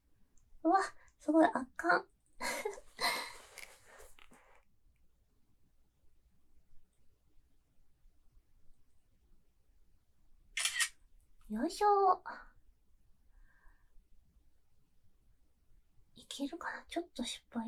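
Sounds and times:
speech: 0:00.7 - 0:02.1, 0:11.6 - 0:12.5, 0:16.4 - 0:17.6
camera shutter clicks taking photos: 0:10.6 - 0:11.0.

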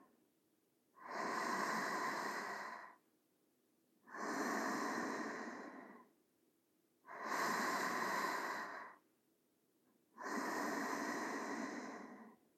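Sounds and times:
sleeping breathing: 0:01.0 - 0:03.0, 0:04.1 - 0:06.1, 0:07.1 - 0:09.0, 0:10.2 - 0:12.5.

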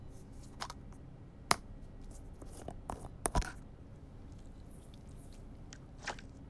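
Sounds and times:
cream applied to an ear in ASMR: 0:00.1 - 0:03.6, 0:04.3 - 0:06.3
ear pick cleaning the right ear in ASMR: 0:00.1 - 0:03.6
peel-off ear pack peeling with a crackle in ASMR: 0:00.1 - 0:03.6, 0:04.3 - 0:06.3.

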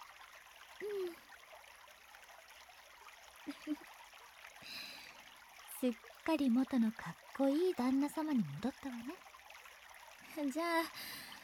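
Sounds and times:
water poured over a person's head to rinse off slime: 0:00.0 - 0:11.4
speech: 0:00.8 - 0:01.3, 0:03.4 - 0:04.0, 0:05.8 - 0:09.3, 0:10.4 - 0:11.2.

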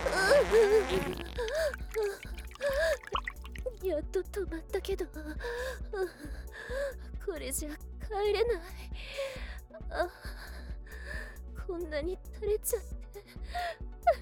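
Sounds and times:
person straining during defecation: 0:00.0 - 0:03.6
background music with sound effects: 0:00.0 - 0:14.1.

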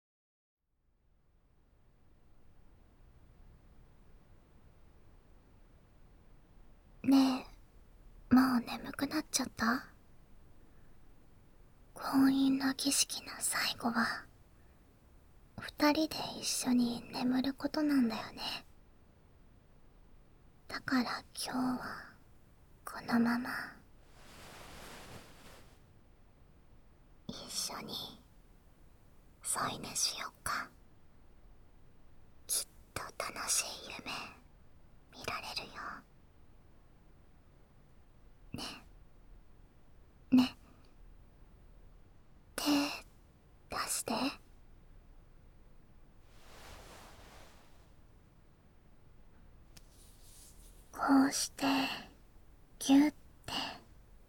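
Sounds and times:
ASMR whispering: 0:07.0 - 0:07.6, 0:08.3 - 0:09.9, 0:12.0 - 0:14.3, 0:15.6 - 0:18.7, 0:20.7 - 0:22.2, 0:22.9 - 0:25.7, 0:27.3 - 0:28.3, 0:29.4 - 0:30.8, 0:32.5 - 0:34.4, 0:35.2 - 0:36.1, 0:38.6 - 0:38.9, 0:40.4 - 0:40.6, 0:42.6 - 0:43.1, 0:43.7 - 0:44.4, 0:50.0 - 0:52.2, 0:52.8 - 0:53.9
sleep breathing: 0:24.0 - 0:25.8, 0:46.3 - 0:48.0.

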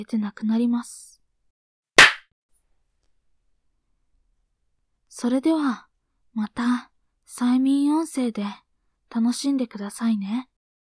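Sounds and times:
speech: 0:00.0 - 0:01.1, 0:05.2 - 0:10.5
hand clap ending a hypnosis session: 0:02.0 - 0:02.2.

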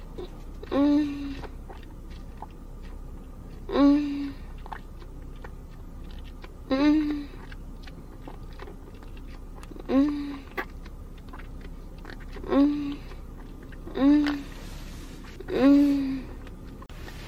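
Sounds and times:
married woman making fellatio sounds: 0:00.2 - 0:01.6, 0:03.6 - 0:04.5, 0:06.6 - 0:07.5, 0:09.8 - 0:10.6, 0:12.3 - 0:13.2, 0:13.8 - 0:14.6, 0:15.4 - 0:16.6.

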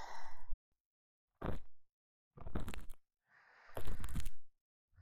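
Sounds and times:
sweet ear cleaning on the right side: 0:01.4 - 0:01.7, 0:02.4 - 0:03.0, 0:03.7 - 0:04.4.

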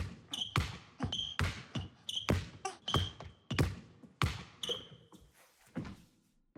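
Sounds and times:
basketball bouncing in a dribbling rhythm: 0:00.0 - 0:05.2.

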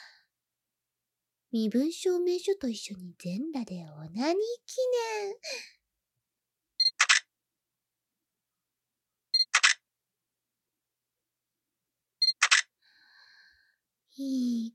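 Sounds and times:
speech: 0:01.5 - 0:05.8, 0:14.2 - 0:14.7
camera shutter releases: 0:06.9 - 0:07.3, 0:09.4 - 0:09.8, 0:12.2 - 0:12.7.

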